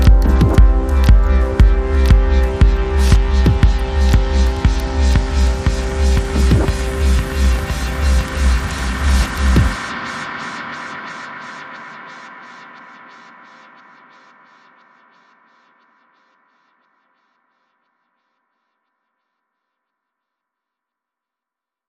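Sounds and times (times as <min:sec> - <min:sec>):
atmospheric adagio remix: 0:00.0 - 0:17.1.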